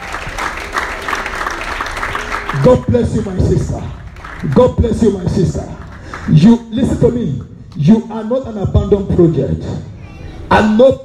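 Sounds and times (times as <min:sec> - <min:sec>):
audience applause: 0:00.0 - 0:03.4, 0:04.0 - 0:05.2
speech: 0:02.5 - 0:09.9, 0:10.5 - 0:11.0.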